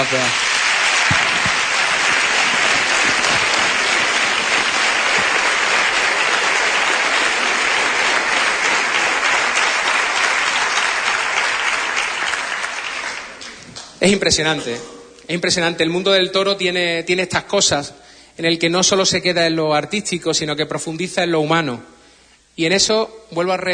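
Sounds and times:
speech: 0.0s - 0.5s, 14.0s - 21.9s, 22.6s - 23.7s
audience applause: 0.0s - 14.0s.

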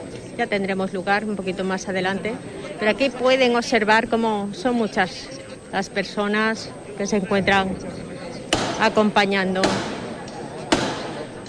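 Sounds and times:
speech: 0.4s - 8.1s, 8.8s - 9.9s
hammer knock signalling procession float: 8.5s - 9.0s, 9.6s - 10.1s, 10.7s - 11.2s.

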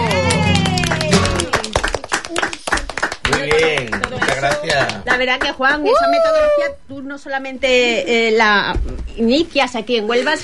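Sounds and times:
audience applause: 0.0s - 5.5s
speech: 4.4s - 10.4s.

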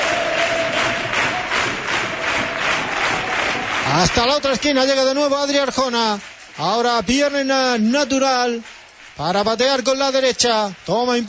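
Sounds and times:
football crowd roaring at the Nuevo Arcángel stadium: 0.0s - 4.6s
speech: 3.9s - 11.2s.

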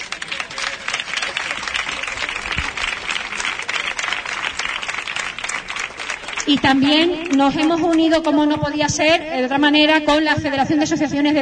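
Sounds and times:
audience applause: 0.0s - 8.4s
speech: 6.5s - 11.3s.

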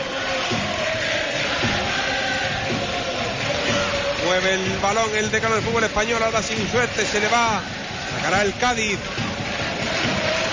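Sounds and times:
Recre fans clapping in rhythm: 0.0s - 10.5s
speech: 4.4s - 9.2s.

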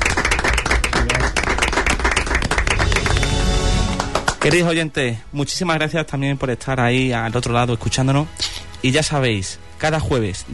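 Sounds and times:
audience applause: 0.0s - 4.7s
speech: 4.4s - 10.5s.

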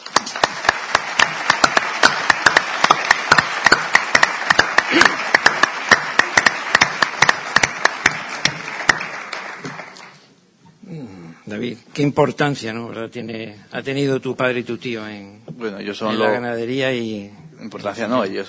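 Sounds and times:
audience applauding: 0.0s - 10.3s
speech: 11.6s - 18.4s.

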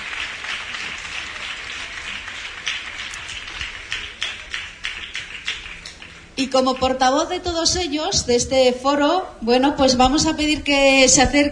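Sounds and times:
audience applause: 0.0s - 6.4s
speech: 6.4s - 11.5s.

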